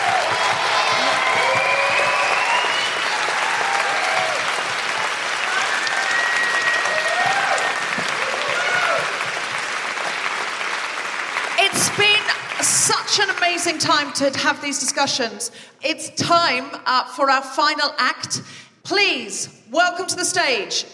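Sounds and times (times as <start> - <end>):
audience applause and cheering at a live stage event: 0.0 - 13.6
speech: 13.7 - 20.9.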